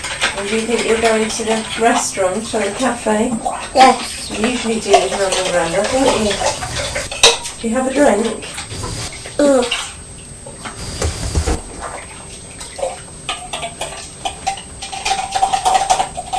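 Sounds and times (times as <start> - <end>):
running tap water while washing out a bottle: 0.0 - 16.3
speech: 0.4 - 6.8, 7.6 - 8.6, 9.4 - 9.8.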